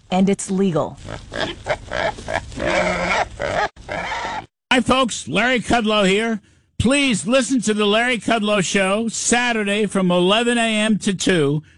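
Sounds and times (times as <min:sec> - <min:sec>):
speech: 0:00.1 - 0:04.2, 0:04.8 - 0:11.7
wild hogs grunting and squealing: 0:01.0 - 0:04.5.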